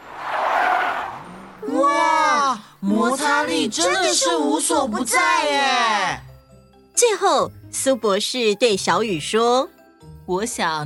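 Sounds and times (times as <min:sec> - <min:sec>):
car braking with tire skid: 0:00.0 - 0:01.6
speech: 0:02.8 - 0:06.3, 0:07.0 - 0:10.8.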